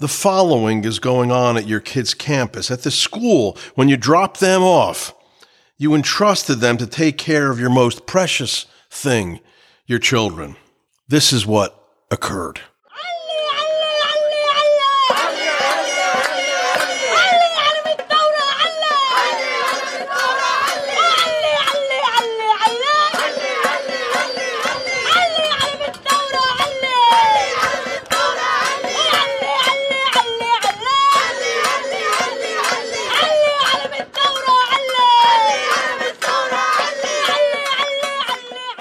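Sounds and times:
speech: 0.0 - 5.2, 5.8 - 13.1
protest crowd screaming and chanting: 12.9 - 38.8.

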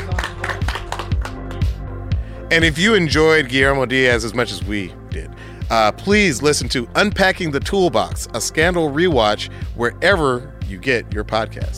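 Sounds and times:
people clapping: 0.0 - 1.8
speech: 2.5 - 11.7.

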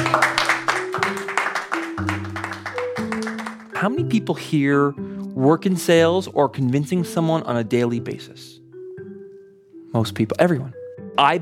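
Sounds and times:
crowd applause: 0.0 - 3.8
speech: 3.8 - 8.6, 10.0 - 11.3.

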